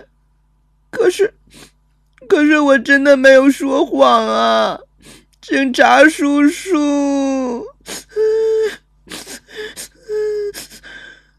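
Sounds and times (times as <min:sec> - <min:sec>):
speech: 0:01.0 - 0:08.4
child sobbing and crying over a phone line: 0:06.8 - 0:11.1.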